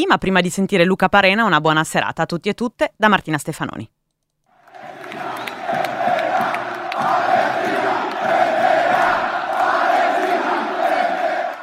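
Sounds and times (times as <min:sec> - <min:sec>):
speech: 0:00.0 - 0:04.0
football fans chanting in stadium: 0:04.6 - 0:11.6.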